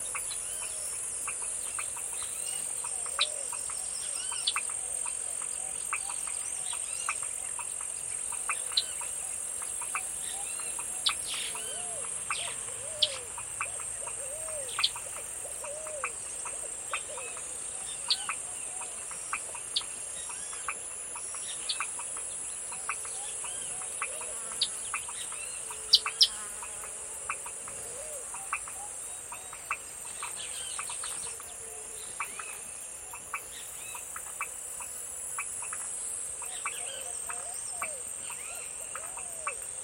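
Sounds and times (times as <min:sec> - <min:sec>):
various birds chirping and twittering: 0:00.0 - 0:39.6.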